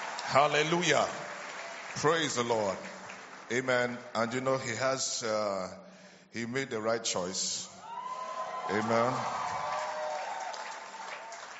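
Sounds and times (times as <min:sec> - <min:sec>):
church congregation clapping for a pastor: 0:00.0 - 0:04.4, 0:08.5 - 0:11.5
speech: 0:00.3 - 0:01.2, 0:02.0 - 0:07.7, 0:08.7 - 0:09.5.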